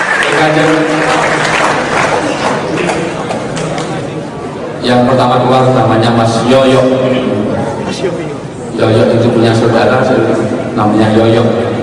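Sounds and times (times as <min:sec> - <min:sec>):
audience applause: 0:00.0 - 0:04.0
speech: 0:00.4 - 0:01.1, 0:04.9 - 0:08.2, 0:08.8 - 0:11.7.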